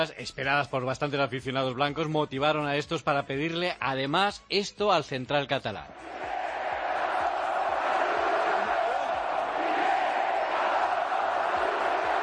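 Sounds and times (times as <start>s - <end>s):
speech: 0.0s - 6.2s
stadium crowd chanting: 5.9s - 12.2s.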